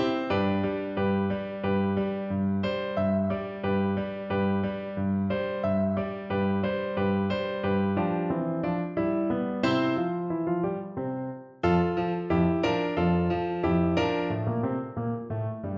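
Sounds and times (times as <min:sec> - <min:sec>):
musette: 0:00.0 - 0:15.7.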